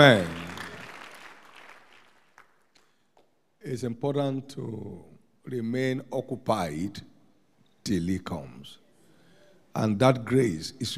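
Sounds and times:
speech: 0.0 - 0.3, 3.7 - 7.1, 7.8 - 8.8, 9.8 - 10.9
church congregation clapping: 0.0 - 3.3.

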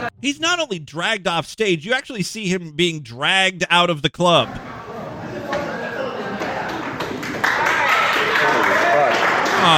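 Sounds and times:
speech: 0.2 - 4.7
audience applause in a club: 6.6 - 9.7.

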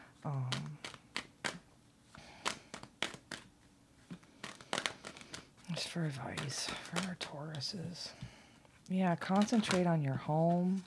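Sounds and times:
speech: 0.2 - 0.6, 5.8 - 8.3, 8.9 - 10.8
tarot cards shuffled and drawn: 0.2 - 7.8, 9.2 - 10.8
person's voice: 0.3 - 0.8, 5.7 - 8.2, 8.9 - 10.8.

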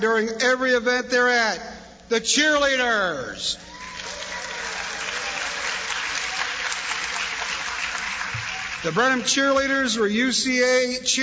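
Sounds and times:
speech: 0.0 - 4.2, 8.8 - 11.2
audience applause: 3.7 - 9.7.

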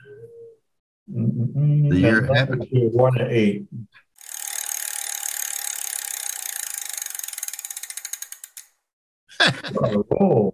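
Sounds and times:
speech: 1.3 - 3.8, 9.6 - 10.5
trivia prize wheel spinning with ratcheting clicks: 4.2 - 8.8
laughter: 9.3 - 10.5.

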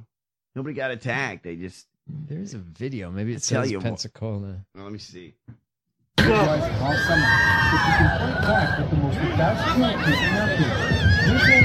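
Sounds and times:
speech: 0.6 - 5.6, 6.2 - 11.6
people on boats freaking out, screaming: 6.2 - 11.6.

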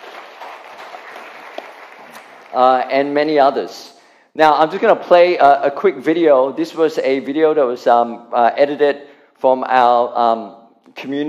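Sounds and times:
church congregation applauding to congratulate a member: 0.0 - 3.2
speech: 2.5 - 11.2.

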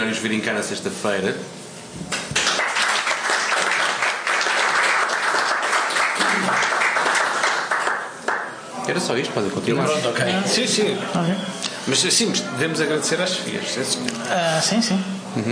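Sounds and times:
speech: 0.0 - 2.2, 8.9 - 15.4
audience applause: 2.3 - 8.6.

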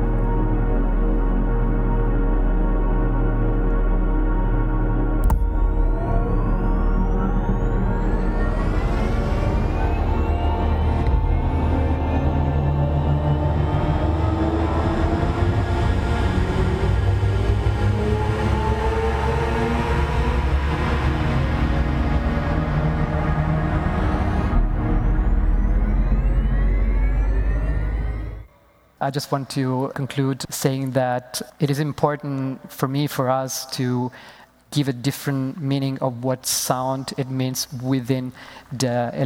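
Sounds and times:
synthetic electric-car driving sound: 0.0 - 28.9
speech: 29.1 - 39.2.

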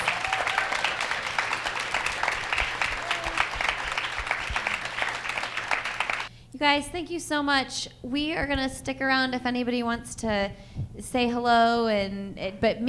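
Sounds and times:
audience applause: 0.0 - 6.3
speech: 6.6 - 12.8.

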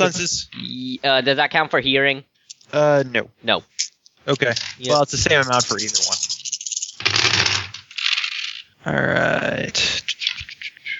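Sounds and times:
speech: 0.0 - 6.2, 8.8 - 10.2
dice rattling across a hard surface: 4.4 - 8.7.

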